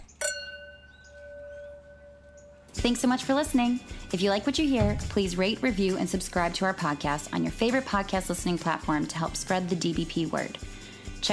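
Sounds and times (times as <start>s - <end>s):
glasses clinking in a toast: 0.0s - 4.0s
speech: 2.8s - 11.3s.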